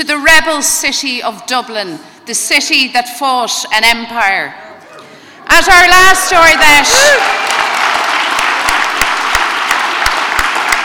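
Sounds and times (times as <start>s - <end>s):
speech: 0.0s - 4.7s, 5.5s - 7.7s
audience applause and cheering at a party conference in Dublin's RDS: 6.8s - 10.8s.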